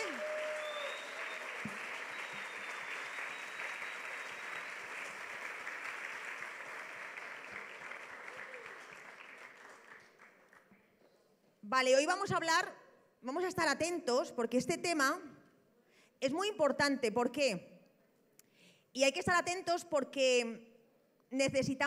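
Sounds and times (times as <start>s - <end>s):
loud applause: 0.0s - 10.7s
speech: 11.7s - 15.3s, 16.2s - 17.7s, 18.9s - 20.7s, 21.3s - 21.8s.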